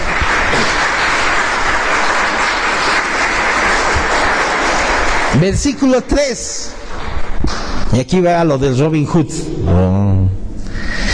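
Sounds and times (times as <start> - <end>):
crowd clapping: 0.0 - 7.8
speech: 5.4 - 6.8, 7.9 - 10.4.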